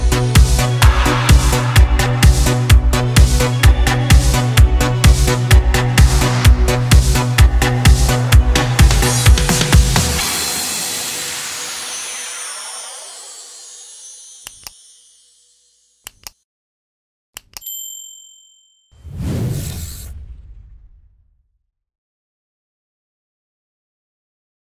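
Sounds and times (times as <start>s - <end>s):
eurodance italo disco remix: 0.0s - 12.2s.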